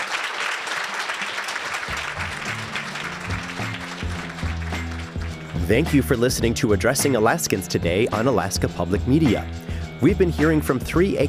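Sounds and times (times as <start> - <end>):
audience applause: 0.0 - 6.0
speech: 5.7 - 11.2.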